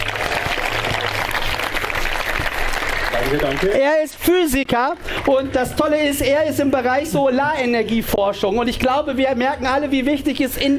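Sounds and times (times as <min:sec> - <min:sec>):
audience applause at a camp talk on solar energy research: 0:00.0 - 0:03.8
speech: 0:03.3 - 0:10.7.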